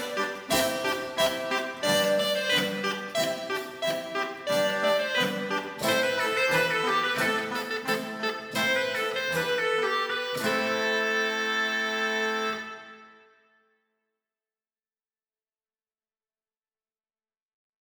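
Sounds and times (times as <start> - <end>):
crumhorn suite: 0.0 - 13.5.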